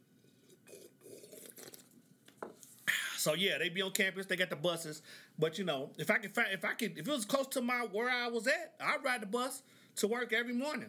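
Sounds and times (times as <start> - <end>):
sipping coffee: 0.3 - 3.3
speech: 3.2 - 10.8.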